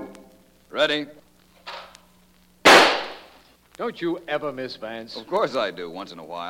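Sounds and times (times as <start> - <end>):
speech: 0.8 - 1.2, 3.8 - 6.4
gunshot at clay pigeon: 2.6 - 3.4.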